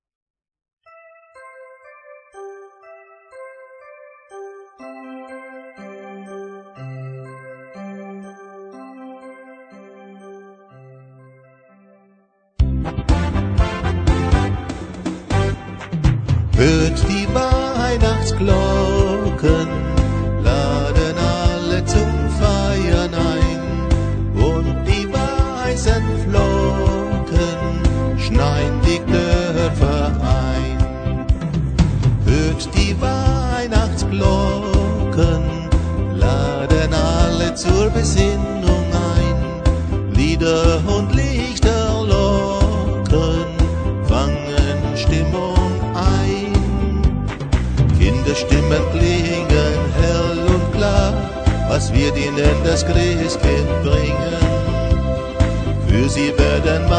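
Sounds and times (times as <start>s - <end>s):
christmas song: 0.9s - 56.9s.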